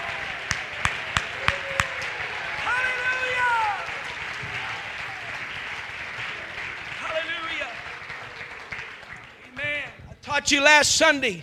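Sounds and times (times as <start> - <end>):
audience shouting: 0.0 - 5.4
audience clapping hands: 0.0 - 10.0
speech: 10.4 - 11.4.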